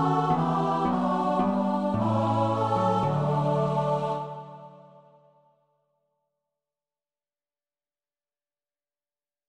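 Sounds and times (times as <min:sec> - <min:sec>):
children's choir singing: 0:00.0 - 0:05.3.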